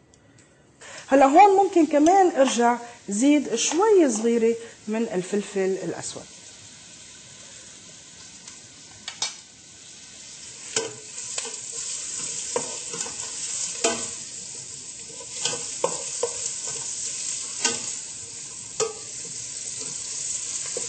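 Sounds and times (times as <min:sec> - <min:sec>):
speech: 0:01.1 - 0:06.4
onions frying in oil in a pot over very high heat: 0:01.2 - 0:20.8.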